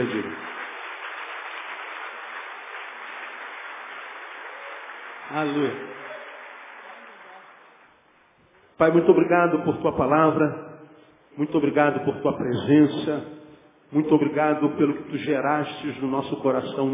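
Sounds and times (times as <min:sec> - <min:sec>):
audience applause: 0:00.0 - 0:08.0
speech: 0:05.3 - 0:05.9, 0:08.8 - 0:10.7, 0:11.4 - 0:16.9.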